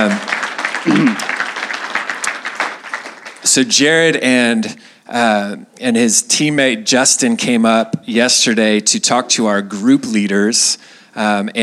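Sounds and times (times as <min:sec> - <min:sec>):
audience applause: 0:00.0 - 0:03.6
speech: 0:03.6 - 0:11.6.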